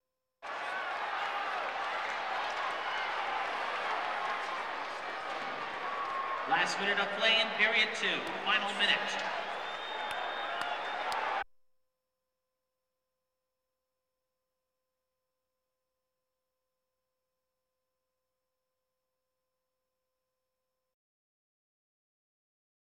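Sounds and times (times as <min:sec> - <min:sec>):
sports crowd: 0:00.4 - 0:11.4.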